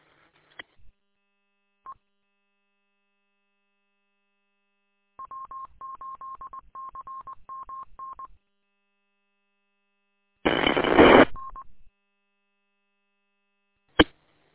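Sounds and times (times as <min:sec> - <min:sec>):
burst of radio static: 0:10.5 - 0:11.4.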